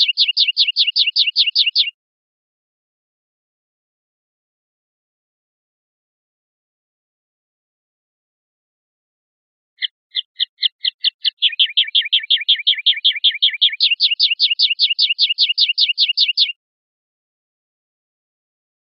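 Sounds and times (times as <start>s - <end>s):
European goldfinch singing: 0.0s - 1.9s, 9.8s - 16.6s.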